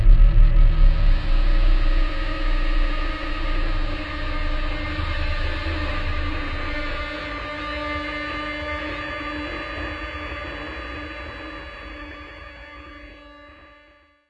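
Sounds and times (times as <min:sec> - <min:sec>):
rising pulse: 0:00.0 - 0:08.1.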